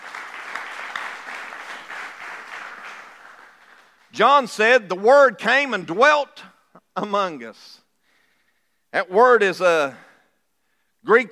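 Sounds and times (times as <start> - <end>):
audience applauding in praise: 0.0 - 4.1
speech: 4.2 - 7.8, 8.9 - 10.1, 11.0 - 11.3.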